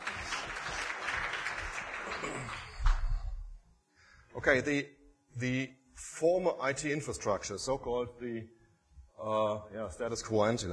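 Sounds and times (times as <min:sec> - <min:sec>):
audience clapping: 0:00.0 - 0:03.4
speech: 0:04.4 - 0:08.6, 0:09.2 - 0:10.7.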